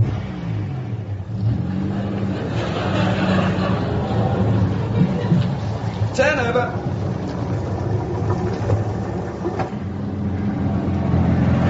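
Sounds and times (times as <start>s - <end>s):
car engine humming while reversing and driving up: 0.0s - 11.6s
laughter: 2.0s - 6.1s.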